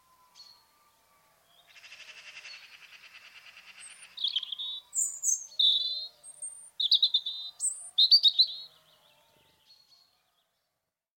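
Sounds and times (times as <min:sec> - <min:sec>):
robin song: 0:03.8 - 0:08.7.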